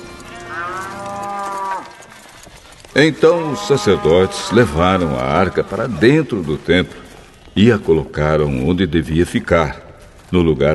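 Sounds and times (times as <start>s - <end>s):
bull mooing: 0.2s - 2.0s, 3.2s - 5.8s
speech: 3.0s - 7.0s, 7.6s - 10.7s.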